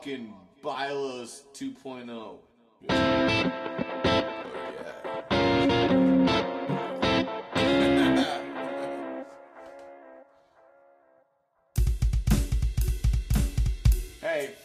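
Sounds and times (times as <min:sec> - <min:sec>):
speech: 0:00.0 - 0:06.6
heavily distorted rock music with guitar chords: 0:02.9 - 0:09.0, 0:11.8 - 0:14.2.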